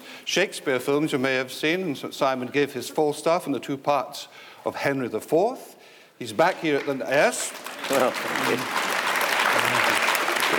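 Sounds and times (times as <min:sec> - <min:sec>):
speech: 0:00.3 - 0:08.8
audience applause: 0:06.8 - 0:10.5.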